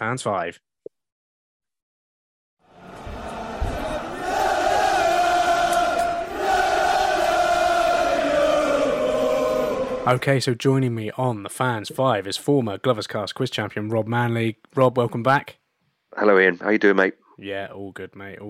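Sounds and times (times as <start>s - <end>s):
speech: 0.0s - 0.7s, 10.0s - 18.4s
crowd cheering and shouting goodbye: 2.7s - 10.1s.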